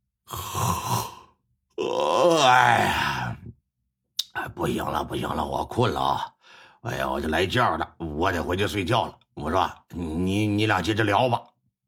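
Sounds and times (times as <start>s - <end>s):
person imitating a yawn: 0.2s - 3.5s
speech: 4.6s - 11.5s.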